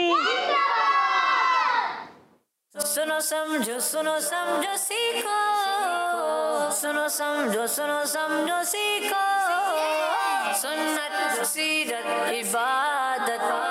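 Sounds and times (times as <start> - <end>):
children shouting a slogan together: 0.0 - 2.1
speech: 3.0 - 13.7.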